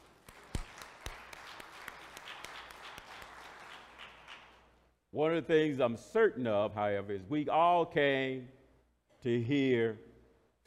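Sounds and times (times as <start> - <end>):
audience hand clapping: 0.0 - 4.8
speech: 5.1 - 8.6, 9.2 - 10.1.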